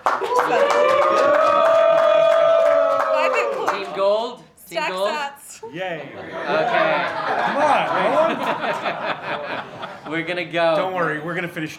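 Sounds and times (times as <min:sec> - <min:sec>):
audience applause for Team Bitcoin: 0:00.0 - 0:04.1
laughter: 0:05.7 - 0:11.0
speech: 0:08.0 - 0:11.7.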